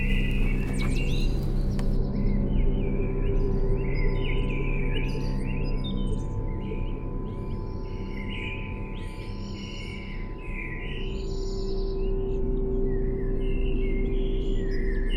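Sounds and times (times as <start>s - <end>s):
chill soundscape: 0.0s - 15.1s.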